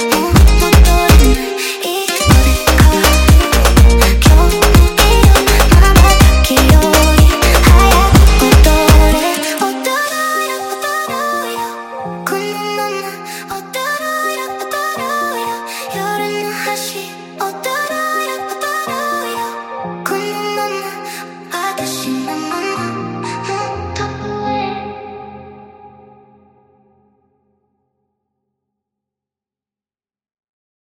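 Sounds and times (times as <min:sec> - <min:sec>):
sped up funk music: 0:00.0 - 0:10.0.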